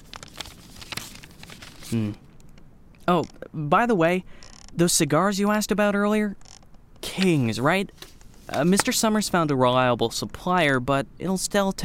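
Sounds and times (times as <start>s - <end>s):
paper envelope of money crinkling and rustling: 0.0s - 2.2s, 7.2s - 9.2s
speech: 1.9s - 2.2s, 3.1s - 6.4s, 7.2s - 11.8s.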